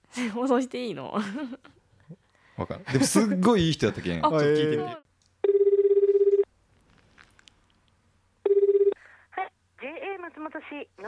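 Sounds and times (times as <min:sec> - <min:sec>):
speech: 0:00.2 - 0:05.6, 0:10.3 - 0:11.0
phone line ringback tone: 0:05.4 - 0:06.5, 0:08.4 - 0:09.0.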